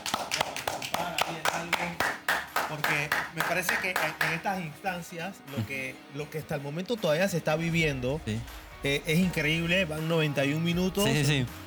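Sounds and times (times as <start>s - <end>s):
applause for a caller: 0.0s - 4.8s
speech: 3.6s - 11.6s.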